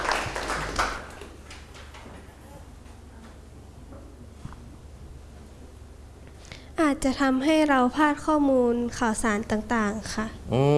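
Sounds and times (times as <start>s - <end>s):
people clapping hands: 0.0s - 2.0s
speech: 6.9s - 10.7s.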